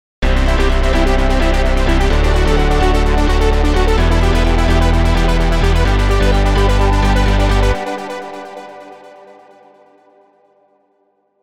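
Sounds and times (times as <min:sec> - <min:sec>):
bass: 0:00.2 - 0:08.6.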